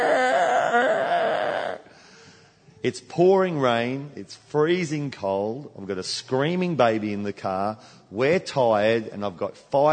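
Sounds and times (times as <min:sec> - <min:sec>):
person imitating windscreen wiper metal squealing on glass: 0:00.0 - 0:01.9
speech: 0:02.8 - 0:09.9.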